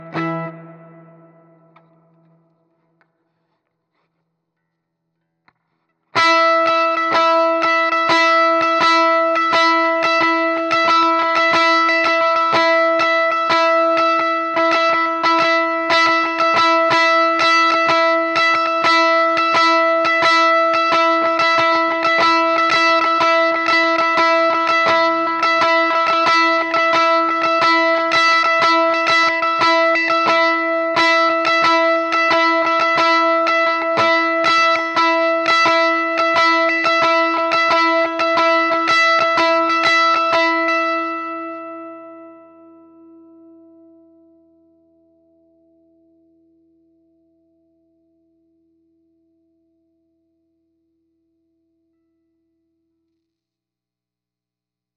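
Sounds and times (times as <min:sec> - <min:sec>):
clean heavy guitar: 0:00.0 - 0:04.1, 0:05.5 - 0:44.5.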